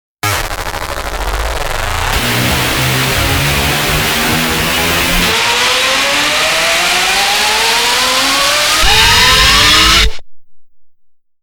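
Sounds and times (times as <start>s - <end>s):
morphing rise: 0.3s - 10.2s.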